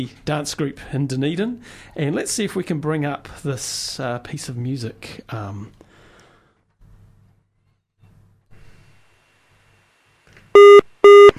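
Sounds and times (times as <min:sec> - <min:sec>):
speech: 0:00.0 - 0:05.8
telephone ringing: 0:10.6 - 0:11.3.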